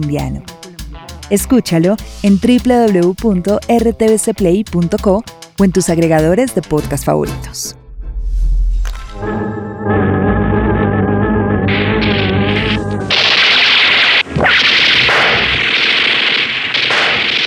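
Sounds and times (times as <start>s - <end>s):
speech: 0.0s - 0.5s, 1.3s - 7.8s
tonal musical swell: 7.8s - 13.1s
dramatized gunfire in an audio drama: 13.2s - 17.4s.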